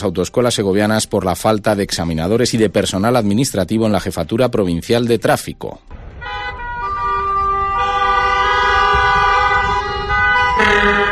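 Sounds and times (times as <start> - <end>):
speech: 0.0 - 6.0
low traffic rumble: 5.8 - 11.1
protest caravan of vehicles blaring car horns: 6.0 - 11.1.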